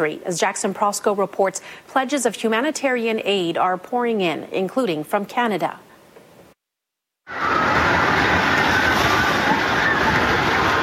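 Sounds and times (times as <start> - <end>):
speech: 0.0 - 5.9
earthquake striking: 7.3 - 10.8
people screaming in terror: 7.3 - 10.8.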